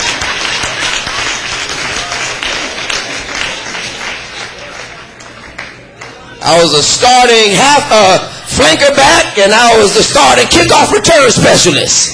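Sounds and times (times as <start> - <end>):
audience applause: 0.0 - 6.4
speech: 6.5 - 12.1.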